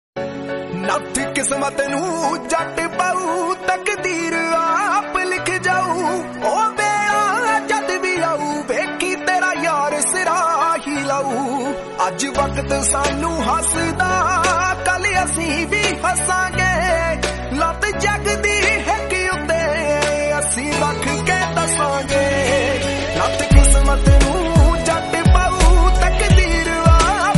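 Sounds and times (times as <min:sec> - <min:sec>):
Punjabi song: 0:00.2 - 0:27.3.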